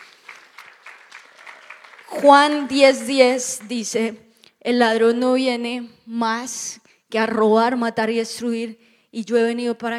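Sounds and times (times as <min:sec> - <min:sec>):
audience applauding: 0:00.0 - 0:03.9
speech: 0:02.1 - 0:09.9.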